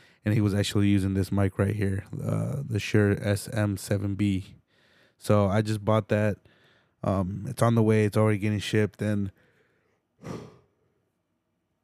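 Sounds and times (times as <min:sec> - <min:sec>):
speech: 0:00.2 - 0:04.6, 0:05.2 - 0:09.4
person yawning: 0:10.2 - 0:10.6.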